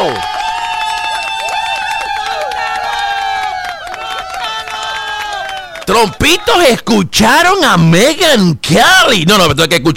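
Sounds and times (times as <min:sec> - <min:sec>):
speech: 0:00.0 - 0:00.3, 0:05.9 - 0:09.9
applause: 0:00.0 - 0:06.6.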